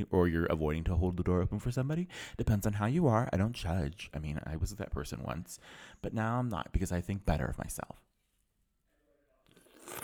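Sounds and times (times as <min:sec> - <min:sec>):
speech: 0:00.0 - 0:08.0
sipping LaCroix sparkling water from a can: 0:09.6 - 0:10.0.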